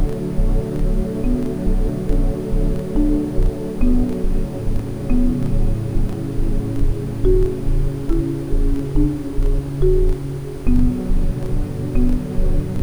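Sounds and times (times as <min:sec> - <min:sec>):
ambient sound: 0:00.0 - 0:12.8
lullaby music: 0:00.0 - 0:12.8
Rife frequency tones: 0:01.2 - 0:02.3, 0:03.0 - 0:06.1, 0:07.2 - 0:11.3.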